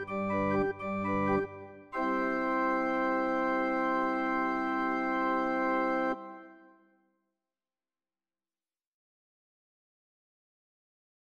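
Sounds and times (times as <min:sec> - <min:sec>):
organ concerto: 0:00.0 - 0:06.6.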